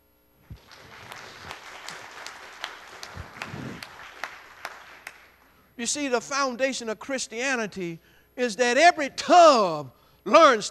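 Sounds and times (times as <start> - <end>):
audience clapping hands in praise: 0.4 - 5.7
speech: 5.8 - 10.6.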